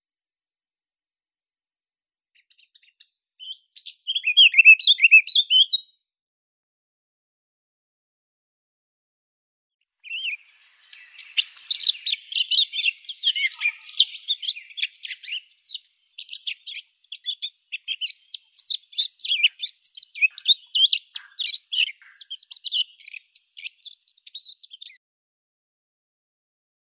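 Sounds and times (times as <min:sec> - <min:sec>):
Eurasian blackcap Sylvia atricapilla singing: 0:02.4 - 0:05.9, 0:10.0 - 0:25.0.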